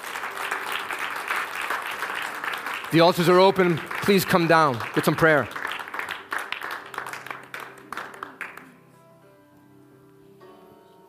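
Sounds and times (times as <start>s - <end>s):
audience hand clapping: 0.0s - 8.8s
speech: 2.9s - 5.6s.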